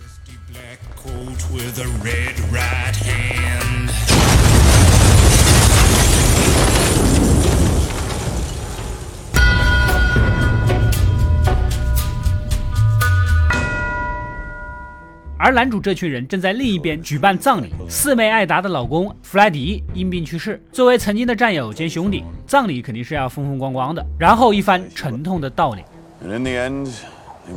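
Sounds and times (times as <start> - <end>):
low music: 0.0 - 4.6, 9.4 - 27.2
speech: 0.7 - 3.5, 15.5 - 27.5
roaring rumble of debris: 1.3 - 14.8
bomb blast: 4.1 - 12.2
ringing bell-like tones: 9.4 - 15.4.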